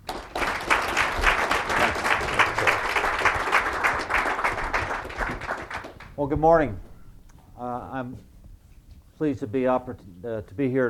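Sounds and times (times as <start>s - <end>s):
audience applause welcoming General Mike Hostage: 0.0s - 6.2s
speech: 6.2s - 6.9s, 7.9s - 8.3s, 9.2s - 10.8s.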